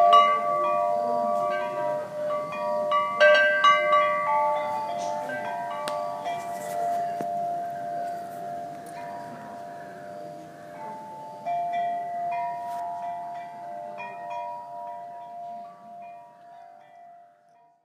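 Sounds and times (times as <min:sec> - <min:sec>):
wind chimes in Bangalore: 0:00.0 - 0:17.8.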